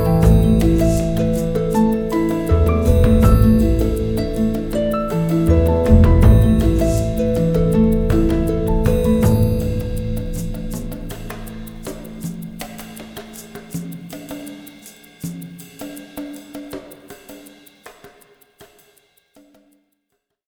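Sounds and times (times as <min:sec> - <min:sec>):
music cue without guitar: 0:00.0 - 0:13.5.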